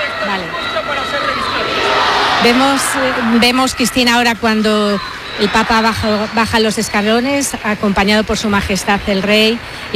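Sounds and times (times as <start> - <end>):
large crowd shouting and cheering: 0.0 - 8.1
speech: 2.4 - 9.9.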